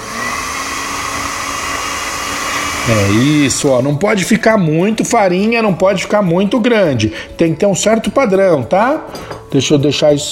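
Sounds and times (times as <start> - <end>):
food processor motor running on grated ingredients: 0.0 - 3.8
speech: 2.9 - 10.3.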